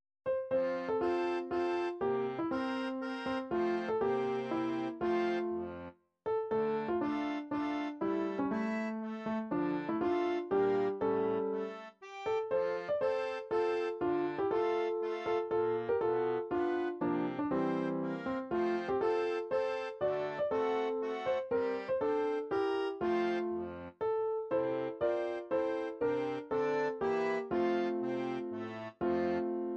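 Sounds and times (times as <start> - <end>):
classical midi ballade: 0.3 - 29.7.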